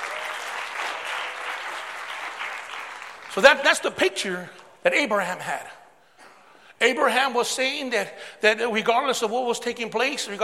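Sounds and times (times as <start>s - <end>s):
audience clapping: 0.0s - 3.7s
speech: 3.4s - 5.8s, 6.8s - 10.4s.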